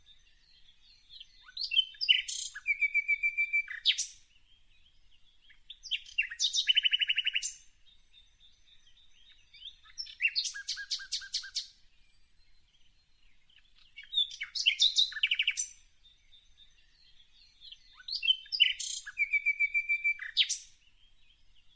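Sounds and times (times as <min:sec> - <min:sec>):
birds singing in a forest: 0:00.0 - 0:21.7.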